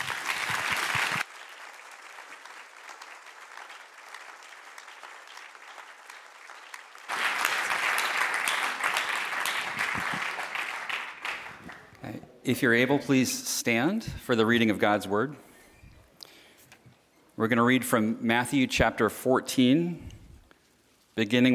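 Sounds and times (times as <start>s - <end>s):
audience applause: 0.0s - 12.0s
speech: 12.5s - 15.5s, 17.4s - 20.1s, 21.2s - 21.5s.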